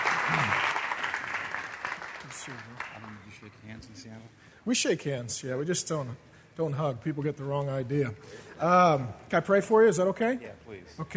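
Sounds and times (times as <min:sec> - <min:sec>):
audience applause: 0:00.0 - 0:03.4
speech: 0:02.4 - 0:11.1.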